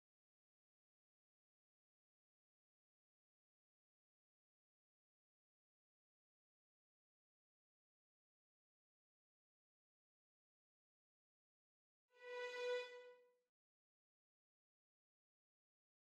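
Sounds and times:
violins: 12.2 - 13.2.

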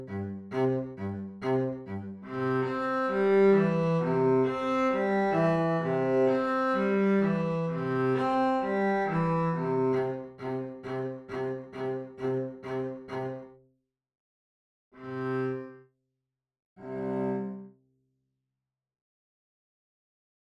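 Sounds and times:
cello: 0.0 - 13.6, 15.0 - 15.8, 16.8 - 17.8.

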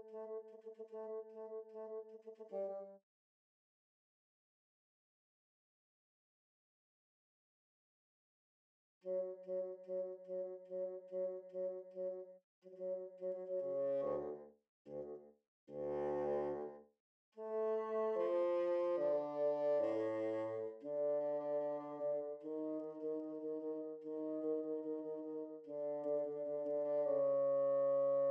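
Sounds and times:
bassoon: 0.0 - 3.0, 9.0 - 16.8, 17.4 - 28.2.

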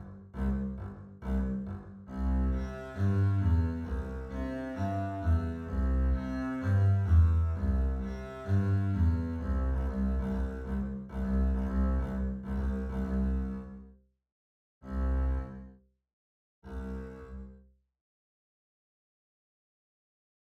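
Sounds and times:
double bass: 0.0 - 13.8, 14.8 - 15.6, 16.7 - 17.5.

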